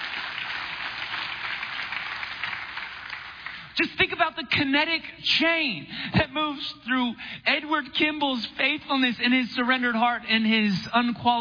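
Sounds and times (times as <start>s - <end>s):
audience applauding: 0.0s - 3.8s
speech: 3.8s - 11.3s.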